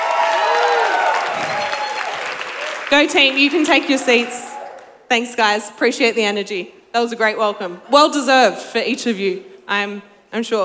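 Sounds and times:
audience applause welcoming a panel to the stage: 0:00.0 - 0:04.9
people cheering: 0:00.0 - 0:05.0
speech: 0:02.9 - 0:04.4, 0:05.1 - 0:10.6.

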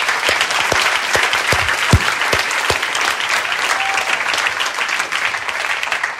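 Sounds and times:
church audience applauding volunteers: 0:00.0 - 0:06.1.

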